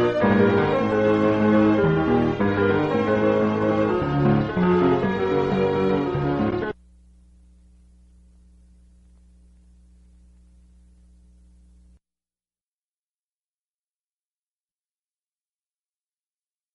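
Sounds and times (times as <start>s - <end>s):
instrumental music: 0.0s - 6.8s.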